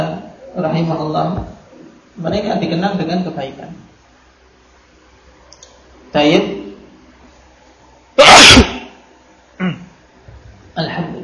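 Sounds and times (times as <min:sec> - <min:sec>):
speech: 0:00.6 - 0:01.6, 0:02.2 - 0:03.9, 0:06.1 - 0:06.6
loud sneeze: 0:08.2 - 0:09.0.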